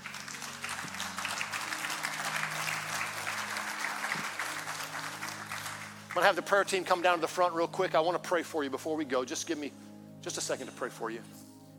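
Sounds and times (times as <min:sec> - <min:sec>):
audience hand clapping: 0:00.0 - 0:07.0
speech: 0:06.2 - 0:11.4.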